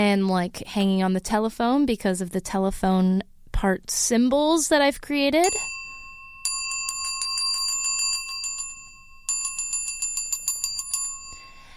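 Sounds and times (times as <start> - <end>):
speech: 0.0 - 5.8
small bells on a horse-jaw instrument jangling: 5.4 - 11.7.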